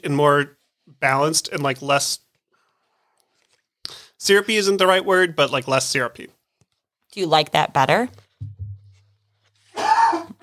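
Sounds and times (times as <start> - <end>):
speech: 0.0 - 2.2, 3.9 - 6.4, 7.1 - 8.2
harsh rasping cough: 9.7 - 10.4.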